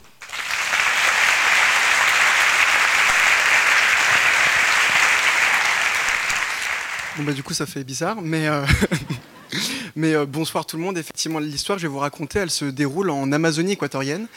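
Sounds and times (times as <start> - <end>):
audience applause: 0.0 - 7.5
speech: 7.2 - 14.3
laughter: 8.6 - 9.7.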